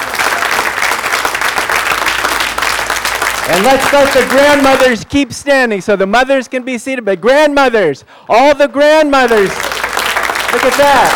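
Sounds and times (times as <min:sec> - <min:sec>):
church audience applause: 0:00.0 - 0:05.0, 0:09.3 - 0:11.1
speech: 0:03.5 - 0:09.7, 0:10.5 - 0:11.1.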